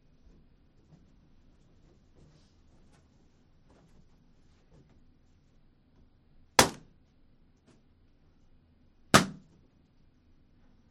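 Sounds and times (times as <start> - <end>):
balloon popped with a needle on a stick: 6.6 - 6.8, 9.2 - 9.4.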